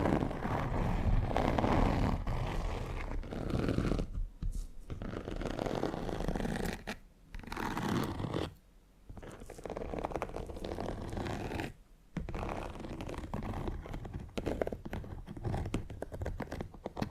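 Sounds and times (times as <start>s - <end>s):
fingernails scratching textured leather: 0.0s - 17.0s.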